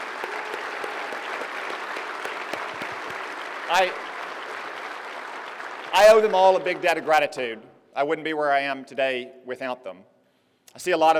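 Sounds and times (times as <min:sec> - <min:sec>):
audience applause at a political rally: 0:00.0 - 0:07.3
speech: 0:03.7 - 0:04.1, 0:05.9 - 0:10.1, 0:10.8 - 0:11.1.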